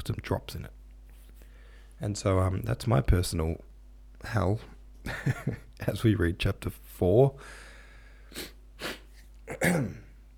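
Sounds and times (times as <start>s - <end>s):
speech: 0.0s - 0.8s, 2.0s - 7.7s, 8.3s - 10.0s
person sniffling from rubbing eyes: 7.4s - 9.3s.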